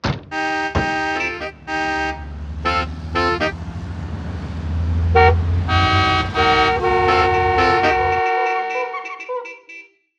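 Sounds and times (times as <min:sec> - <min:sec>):
klaxon: 0:00.4 - 0:03.8, 0:04.9 - 0:09.8.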